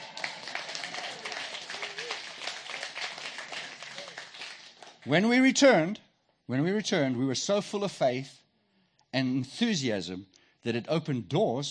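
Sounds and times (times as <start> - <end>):
audience applauding: 0.0 - 5.0
speech: 5.0 - 8.4, 9.1 - 11.7.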